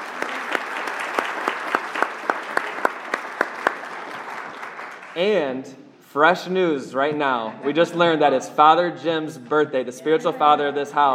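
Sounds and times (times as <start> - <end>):
audience applause: 0.0 - 5.4
speech: 5.2 - 11.1.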